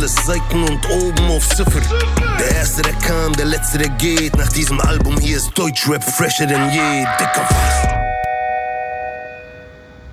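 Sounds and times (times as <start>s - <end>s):
speech: 0.0s - 8.0s
doorbell ringing: 5.6s - 10.1s.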